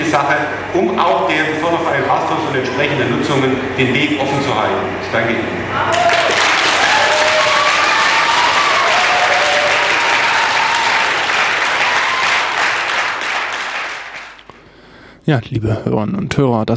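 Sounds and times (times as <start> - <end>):
speech: 0.1 - 6.2, 15.3 - 16.7
audience applause after a council speech: 5.8 - 14.5.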